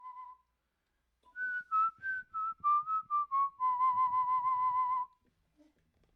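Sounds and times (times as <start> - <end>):
person whistling: 0.0 - 0.6, 1.3 - 5.2.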